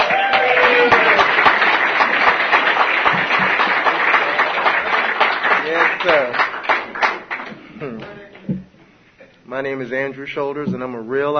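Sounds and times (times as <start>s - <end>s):
audience clapping to welcome the main speaker: 0.0s - 8.4s
speech: 9.5s - 11.3s.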